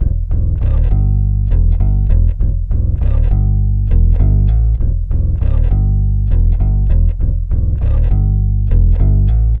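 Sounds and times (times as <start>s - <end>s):
pitch-shifted bass: 0.0s - 9.5s.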